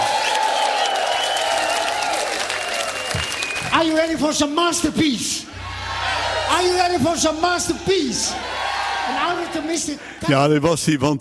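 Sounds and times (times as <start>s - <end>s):
audience applause: 0.0s - 4.2s, 5.6s - 10.2s
speech: 3.7s - 5.5s, 6.5s - 11.1s.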